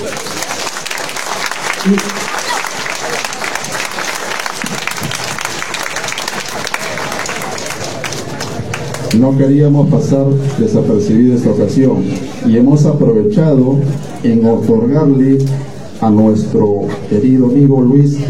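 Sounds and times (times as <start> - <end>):
audience applause: 0.0 - 9.2
speech: 1.8 - 2.3, 9.2 - 18.2.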